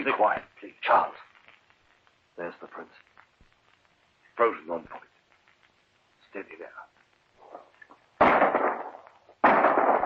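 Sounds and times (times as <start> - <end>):
speech: 0.0 - 1.3, 2.4 - 3.1, 4.4 - 5.1, 6.3 - 6.9
faint rustling: 0.2 - 8.2
shotgun shot at a bird: 8.2 - 10.0.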